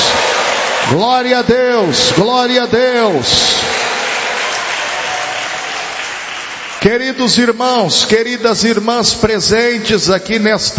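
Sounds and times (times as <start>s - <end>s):
audience clapping: 0.0s - 7.9s
speech: 0.9s - 3.9s, 6.8s - 10.7s.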